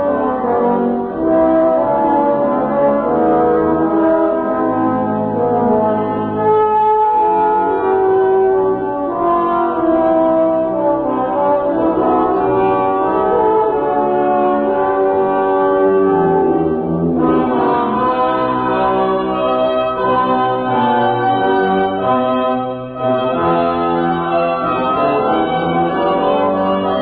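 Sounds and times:
brass choirs and soloists: 0.0 - 27.0.

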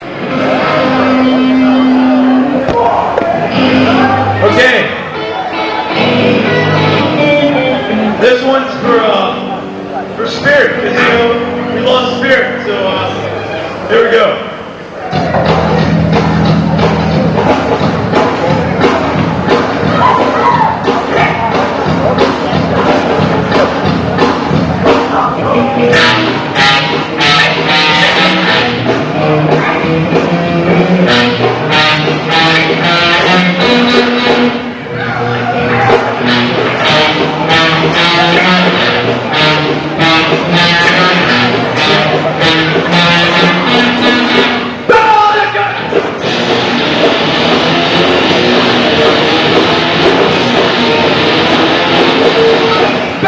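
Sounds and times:
song: 0.0 - 53.2.

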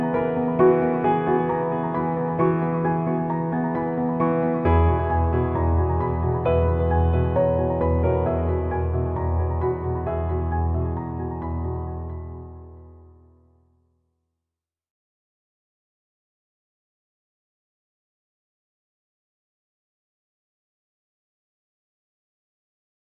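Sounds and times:
inspirational piano music: 0.0 - 13.4.

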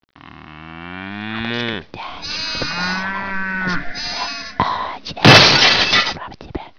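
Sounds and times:
cow mooing: 0.2 - 4.6
smash: 5.2 - 6.2.

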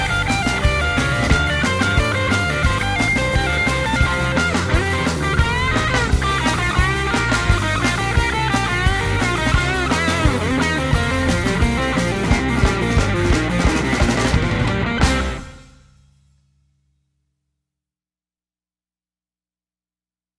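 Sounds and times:
blues music: 0.0 - 16.0.

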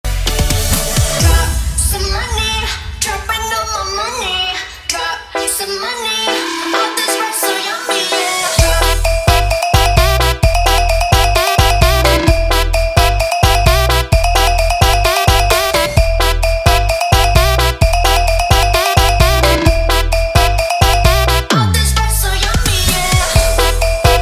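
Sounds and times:
music: 0.0 - 24.2.

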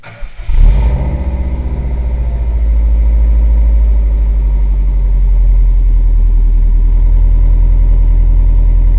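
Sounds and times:
Subaru WRX three-pipe exhaust low rumble: 0.3 - 8.9.

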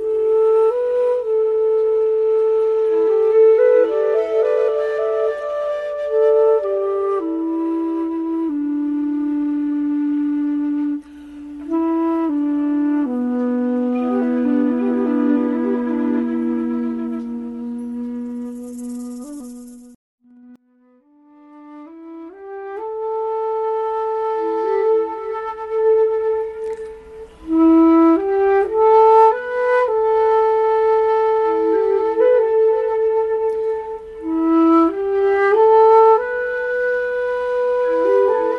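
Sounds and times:
flute sampler: 0.0 - 38.5.

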